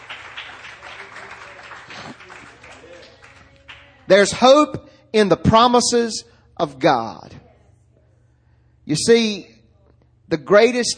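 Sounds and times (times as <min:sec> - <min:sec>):
audience applauding: 0:00.0 - 0:04.0
speech: 0:04.1 - 0:07.4, 0:08.9 - 0:09.6, 0:10.3 - 0:10.9.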